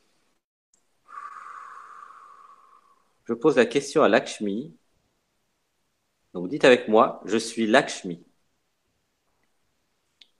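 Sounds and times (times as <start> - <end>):
long deep breath: 1.0 - 3.2
speech: 3.3 - 4.8, 6.4 - 8.3.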